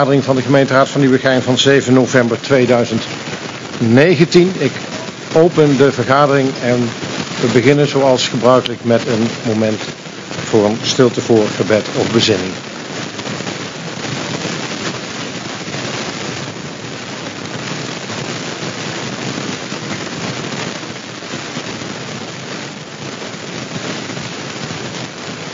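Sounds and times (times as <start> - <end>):
speech: 0.0 - 12.7
rain on a dome roof: 0.0 - 25.5.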